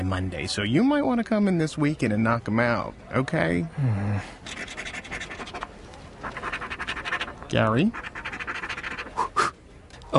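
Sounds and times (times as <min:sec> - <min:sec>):
speech: 0:00.0 - 0:04.8, 0:07.5 - 0:08.1
coin scratching a lottery scratch-off ticket: 0:04.5 - 0:09.2.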